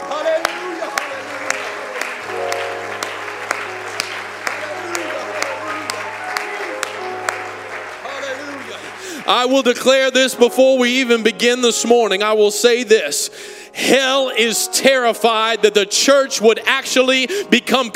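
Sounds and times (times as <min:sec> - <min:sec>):
audience clapping: 0:00.0 - 0:10.4
speech: 0:09.3 - 0:17.9.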